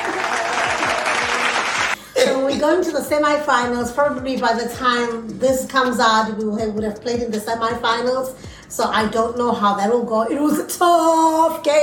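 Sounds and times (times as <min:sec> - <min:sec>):
people clapping: 0:00.0 - 0:02.0
speech: 0:02.6 - 0:11.8.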